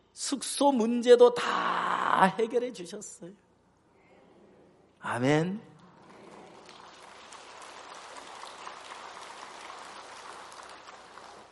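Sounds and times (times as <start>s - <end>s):
speech: 0.2s - 3.4s, 5.0s - 5.7s
audience clapping: 5.8s - 11.5s.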